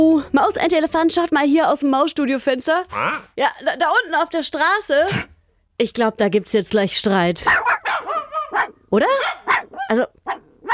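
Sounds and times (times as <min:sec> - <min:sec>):
speech: 0:00.0 - 0:07.8, 0:08.9 - 0:10.7
two playful dogs barking and yipping in the street: 0:07.4 - 0:10.7.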